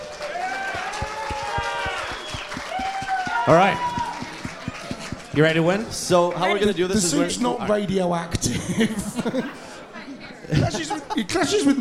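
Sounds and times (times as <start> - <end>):
audience applauding: 0.0 - 5.9
faint tonal whooping sounds: 0.2 - 5.0
speech: 3.4 - 3.9, 5.4 - 9.6, 10.5 - 11.7
laughter: 6.8 - 11.7.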